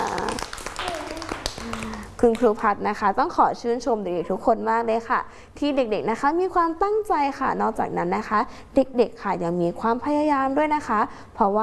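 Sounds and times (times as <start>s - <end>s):
children clapping: 0.0s - 2.5s
speech: 2.2s - 11.6s.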